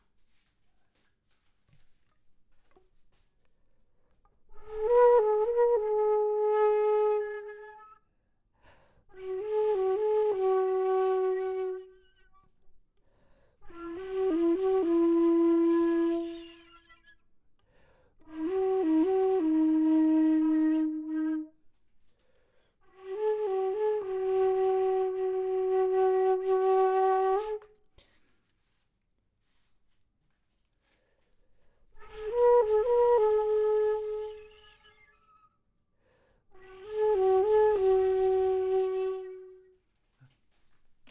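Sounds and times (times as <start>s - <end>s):
low flute: 4.5s - 8.1s, 9.1s - 12.6s, 13.6s - 17.2s, 18.2s - 21.6s, 22.9s - 27.8s, 32.0s - 35.6s, 36.5s - 39.8s.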